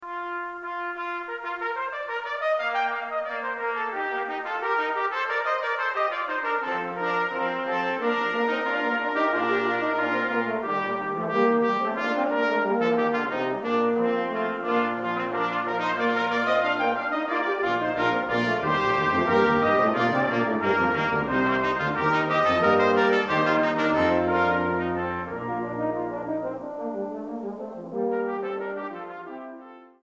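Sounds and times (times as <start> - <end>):
brass canzona: 0.0 - 30.0.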